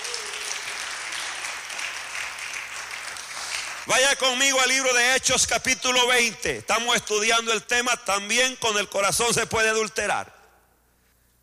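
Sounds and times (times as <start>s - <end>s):
audience applause: 0.0s - 3.9s
speech: 3.9s - 10.4s.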